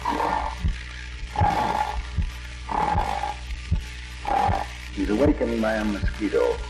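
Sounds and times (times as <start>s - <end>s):
man vocally imitating snoring: 0.0s - 0.6s, 1.3s - 2.1s, 2.7s - 3.4s, 4.2s - 4.7s
speech: 5.1s - 6.6s.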